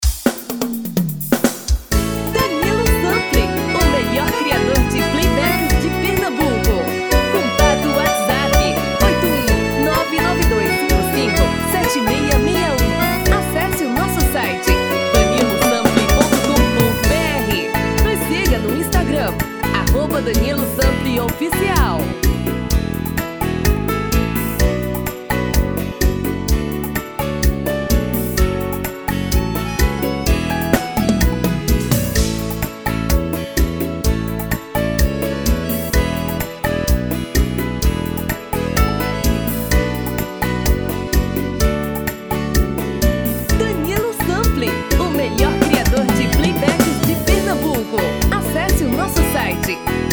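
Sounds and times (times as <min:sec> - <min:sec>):
seresta music: 0:00.9 - 0:50.1.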